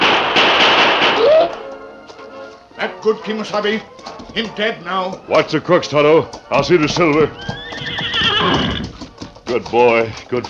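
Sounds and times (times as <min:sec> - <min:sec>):
gunshot: 0:00.0 - 0:01.6
speech: 0:02.8 - 0:08.8, 0:09.5 - 0:10.4.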